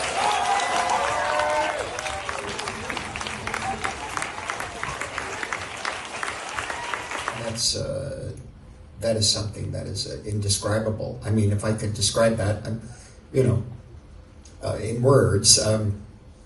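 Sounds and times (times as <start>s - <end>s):
audience applauding to welcome Martin Scorsese: 0.0s - 7.6s
speech: 9.1s - 13.7s, 14.6s - 16.0s.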